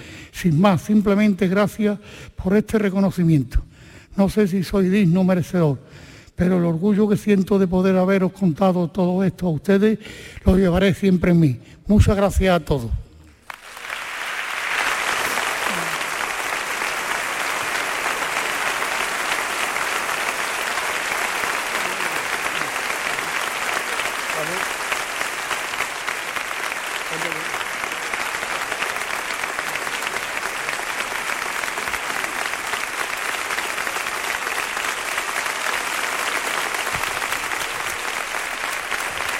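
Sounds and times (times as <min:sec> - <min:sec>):
speech: 0:00.4 - 0:13.0
audience applause: 0:13.4 - 0:39.3.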